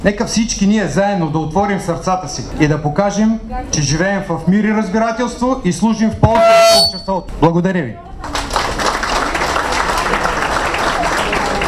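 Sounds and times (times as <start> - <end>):
speech: 0.0 - 8.1
audience applause: 8.3 - 11.6.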